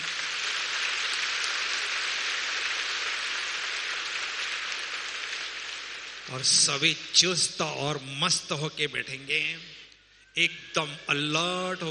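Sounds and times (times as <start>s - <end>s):
audience applause: 0.0s - 6.9s
speech: 6.3s - 9.8s, 10.4s - 11.8s.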